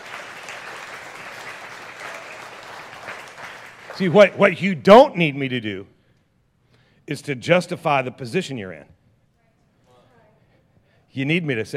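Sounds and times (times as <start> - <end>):
audience applause: 0.0 - 4.5
speech: 4.0 - 5.9, 7.1 - 9.0, 11.1 - 11.7.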